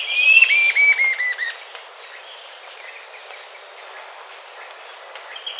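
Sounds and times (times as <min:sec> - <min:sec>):
bird whistled notes: 0:00.1 - 0:01.6.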